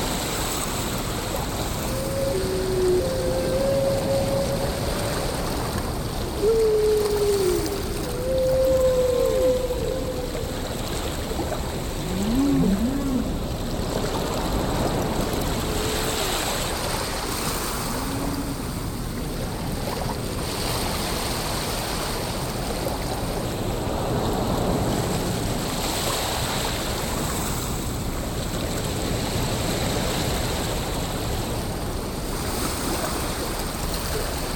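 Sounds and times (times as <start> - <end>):
ocean: 0.0 - 34.5
whales: 0.1 - 20.2.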